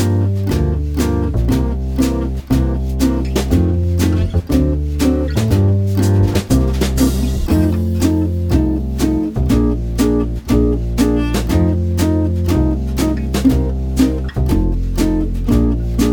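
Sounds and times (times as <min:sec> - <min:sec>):
jazz blues guitar in F major: 0:00.0 - 0:16.1.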